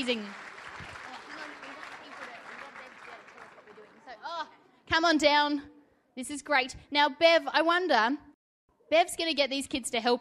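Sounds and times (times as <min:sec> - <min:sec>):
speech: 0:00.0 - 0:00.5, 0:04.3 - 0:08.3, 0:08.9 - 0:10.1
audience clapping: 0:00.0 - 0:04.2.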